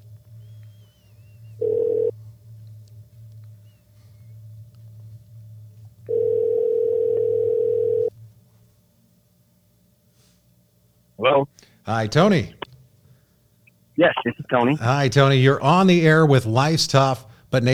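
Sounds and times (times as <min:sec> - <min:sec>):
telephone line tone while placing a call: 0:01.6 - 0:02.1, 0:06.1 - 0:08.1
speech: 0:11.9 - 0:12.6, 0:14.0 - 0:17.7.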